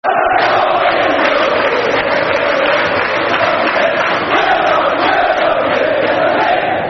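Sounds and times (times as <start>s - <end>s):
football crowd chanting: 0.0s - 6.8s.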